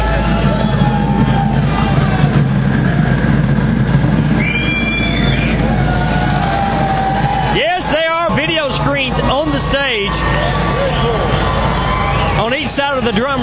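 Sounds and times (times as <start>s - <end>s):
concert crowd cheering: 0.0s - 13.4s.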